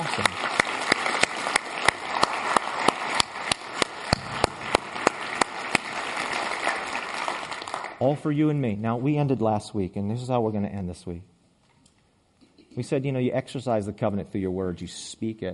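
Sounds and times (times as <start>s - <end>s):
audience applause: 0.0s - 8.0s
speech: 8.0s - 11.3s, 12.8s - 15.5s.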